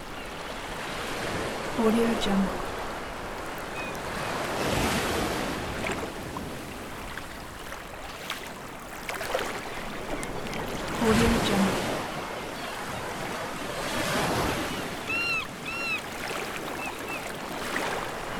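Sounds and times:
waves on a beach: 0.0s - 18.3s
seagulls on a beach: 14.5s - 17.3s.

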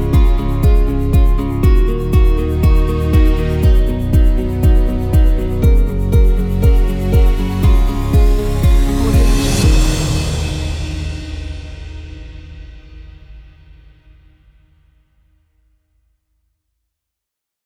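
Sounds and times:
energetic uplifting summer folk music: 0.0s - 11.4s.

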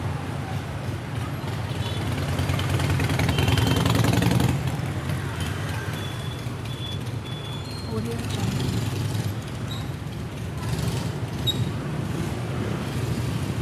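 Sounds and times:
busy traffic in Saigon: 0.0s - 13.6s.

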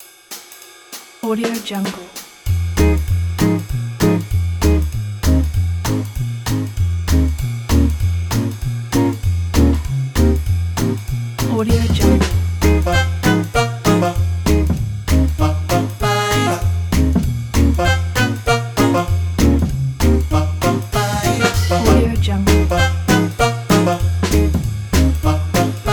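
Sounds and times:
big band night show: 1.5s - 25.9s.

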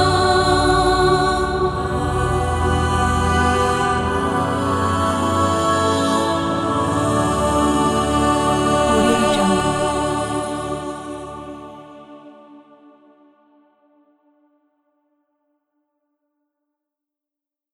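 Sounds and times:
ethereal voices: 0.0s - 13.2s.

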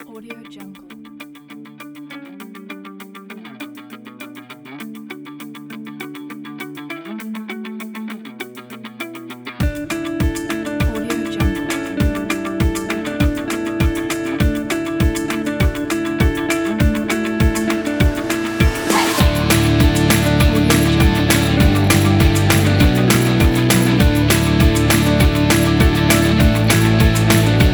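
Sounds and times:
upbeat fun indie rock music: 9.6s - 27.7s.

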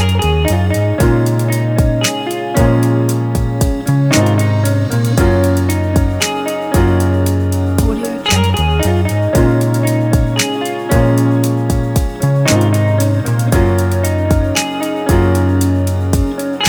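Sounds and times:
modern emotional rnb guitar music: 0.0s - 16.6s.

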